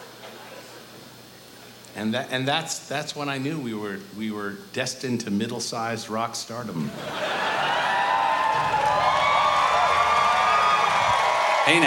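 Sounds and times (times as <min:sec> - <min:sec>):
speech: 0:02.0 - 0:07.3, 0:11.7 - 0:11.8
laughter: 0:06.8 - 0:10.2
audience applause and cheering: 0:07.0 - 0:11.8.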